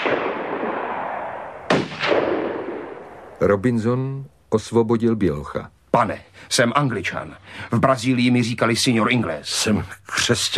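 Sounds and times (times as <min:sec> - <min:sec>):
gunshots fired at a boat: 0:00.0 - 0:03.3
speech: 0:03.4 - 0:10.5.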